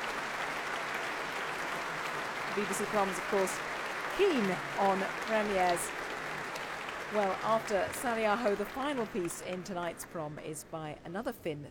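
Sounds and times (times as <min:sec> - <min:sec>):
orchestra concert audience applause: 0:00.0 - 0:11.0
speech: 0:02.6 - 0:06.0, 0:07.1 - 0:11.6.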